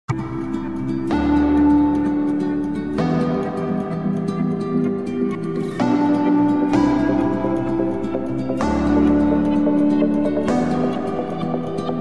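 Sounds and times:
bass: 0.1s - 11.9s
song remix: 0.1s - 11.9s.

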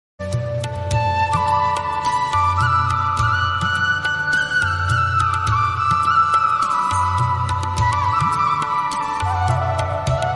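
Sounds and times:
bansuri flute instrumental ringtone: 0.2s - 10.3s.

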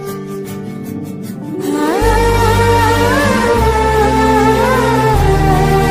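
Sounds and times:
Tamil love lofi ringtone music: 1.5s - 5.7s.

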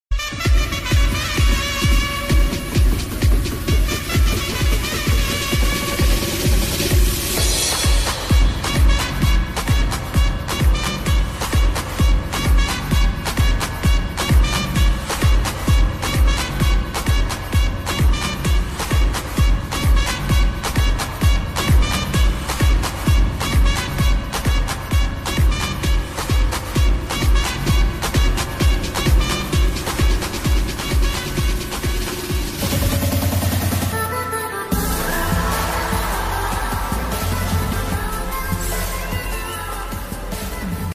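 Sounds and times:
background music: 0.1s - 40.9s.

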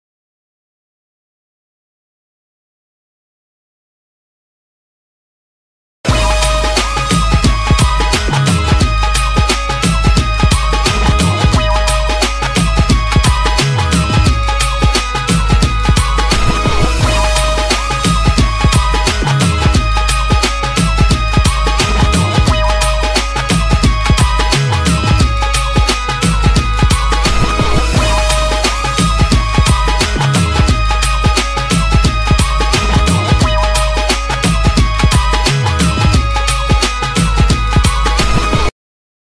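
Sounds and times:
instrumental ringtone: 6.1s - 38.3s.

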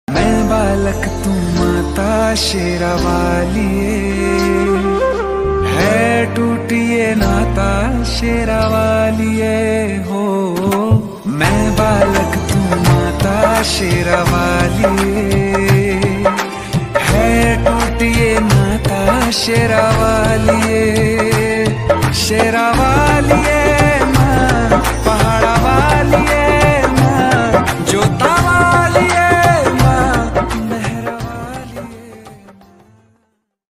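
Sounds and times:
Hindi love song ringtone: 0.1s - 32.4s.

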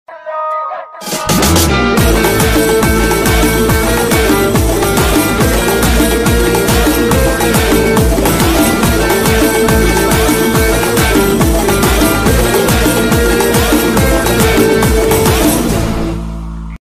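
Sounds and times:
climactic background music: 1.2s - 16.7s.

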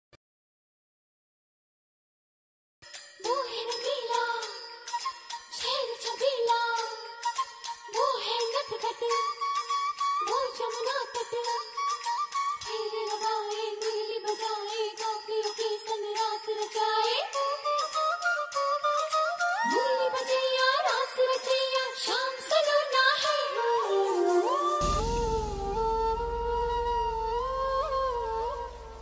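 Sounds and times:
Krishna flute ringtone: 2.9s - 28.9s.

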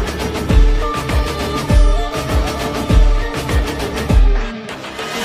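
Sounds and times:
villain background music ringtone: 0.2s - 5.0s.

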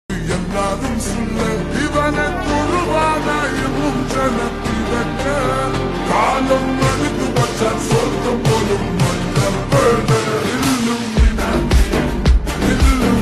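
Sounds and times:
lofi song remix: 0.1s - 13.2s.

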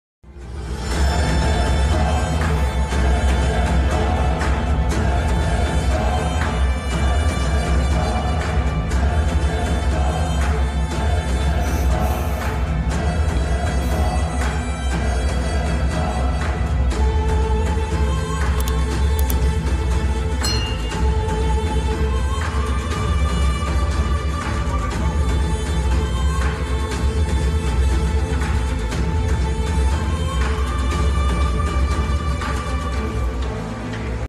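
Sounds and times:
climax scene movie background music ringtone: 0.3s - 34.2s.

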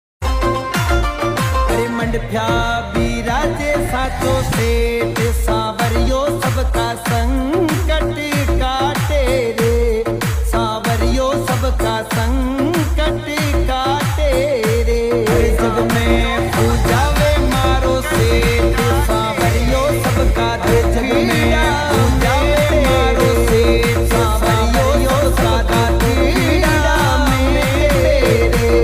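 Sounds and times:
bhajan devotional song: 0.3s - 28.8s.

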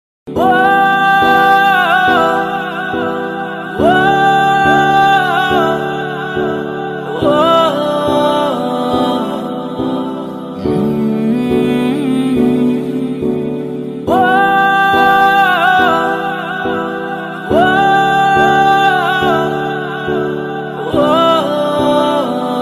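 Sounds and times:
sad heart touching background music: 0.3s - 22.6s.

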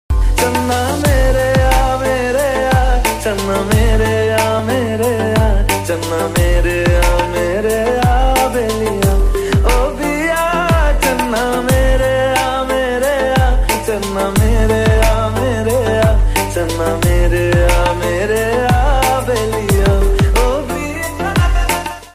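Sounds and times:
lofi Hindi ringtone mix: 0.1s - 22.1s.

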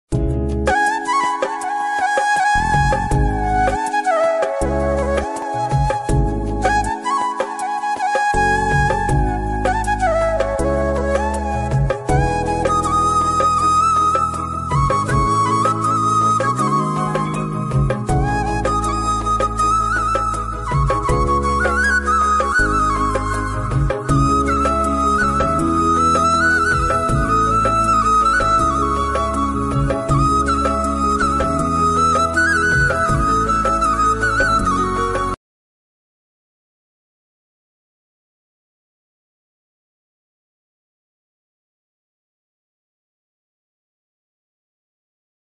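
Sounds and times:
heart touching instrumental flute ringtone: 0.7s - 35.4s.

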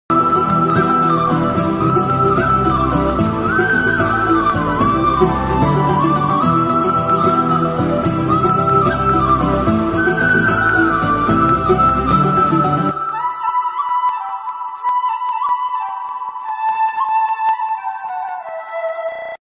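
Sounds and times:
Tamil love background music ringtone: 0.1s - 19.4s.

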